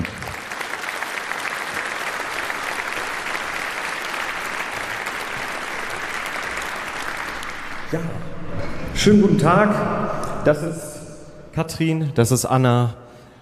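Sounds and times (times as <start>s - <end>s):
audience applause: 0.0s - 8.6s
speech: 7.9s - 10.9s, 11.6s - 13.0s.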